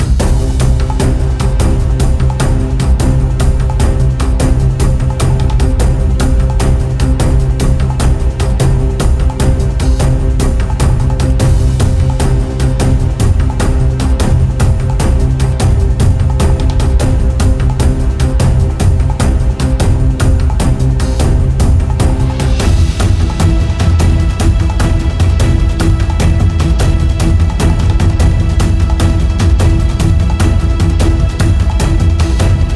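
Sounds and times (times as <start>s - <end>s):
tension violin composition: 0.2s - 32.7s.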